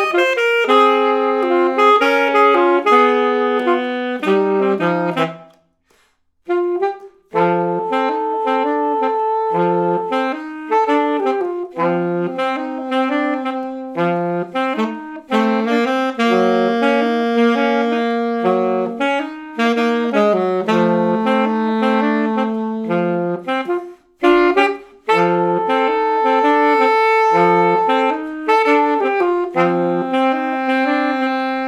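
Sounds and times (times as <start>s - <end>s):
alto saxophone: 0.0s - 31.6s.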